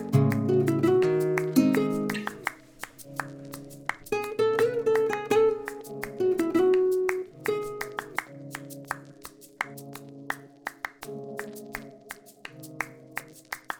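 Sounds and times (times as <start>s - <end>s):
world music melodies: 0.0s - 9.2s.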